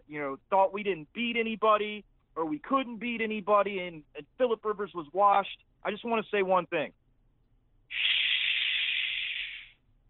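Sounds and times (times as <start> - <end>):
speech: 0.1 - 7.0
person shushing: 7.9 - 9.7.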